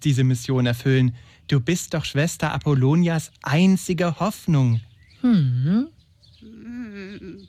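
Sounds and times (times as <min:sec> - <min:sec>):
speech: 0:00.0 - 0:06.6
human voice imitating raven calls: 0:05.2 - 0:07.4.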